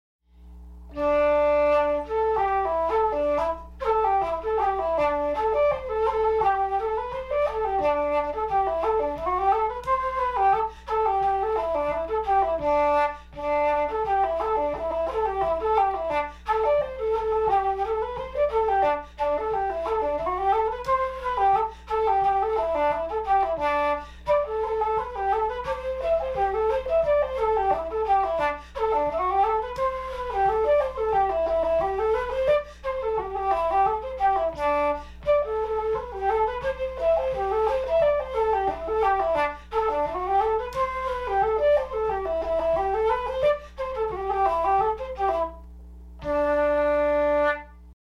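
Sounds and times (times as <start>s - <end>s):
solo flute: 0.4s - 48.0s.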